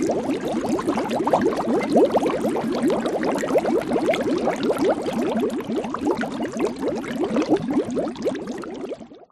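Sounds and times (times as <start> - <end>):
horror cauldron bubbling: 0.0 - 9.3.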